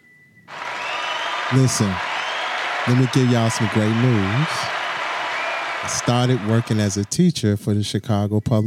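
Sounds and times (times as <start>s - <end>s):
dense hand clapping: 0.5s - 7.1s
speech: 1.5s - 2.1s, 2.8s - 4.7s, 5.8s - 8.6s.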